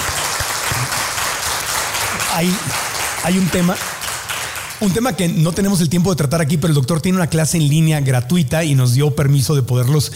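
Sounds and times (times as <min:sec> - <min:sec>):
audience applause for a doctor at a health talk: 0:00.0 - 0:05.1
speech: 0:02.3 - 0:03.9, 0:04.8 - 0:10.1.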